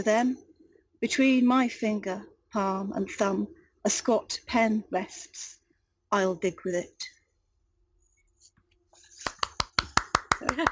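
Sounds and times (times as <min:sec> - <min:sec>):
speech: 0:00.0 - 0:07.2, 0:10.4 - 0:10.6
small round of applause: 0:09.2 - 0:10.6.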